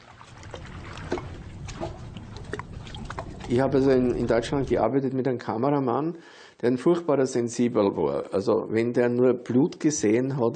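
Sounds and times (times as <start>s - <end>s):
water lapping at a lake shore: 0.0s - 4.8s
speech: 3.5s - 10.5s.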